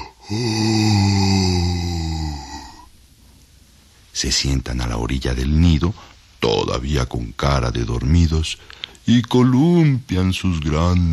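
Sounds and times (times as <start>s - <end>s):
person imitating a yawn: 0.0s - 2.9s
speech: 0.3s - 0.7s, 4.2s - 11.1s.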